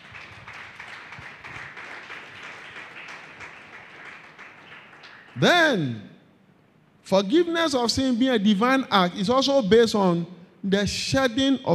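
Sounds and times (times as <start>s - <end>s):
audience clapping: 0.0s - 5.7s
speech: 5.4s - 6.1s, 7.1s - 11.7s.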